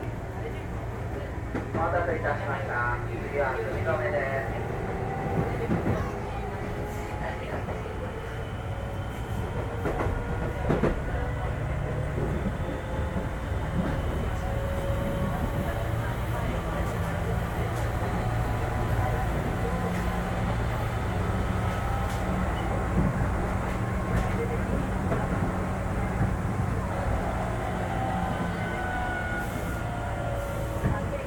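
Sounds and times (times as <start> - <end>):
Keihan 2600 series train running between Tambabashi and Sumizome: 0.0 - 31.2.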